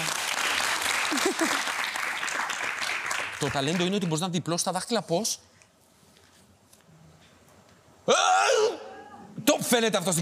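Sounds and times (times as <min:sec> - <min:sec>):
applause: 0:00.0 - 0:04.3
speech: 0:01.3 - 0:01.8, 0:03.4 - 0:05.5, 0:09.7 - 0:10.2.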